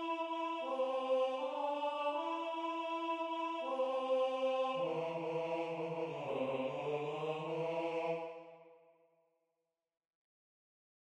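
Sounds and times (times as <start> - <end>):
tenor singing a religious folk song: 0.0 - 8.4.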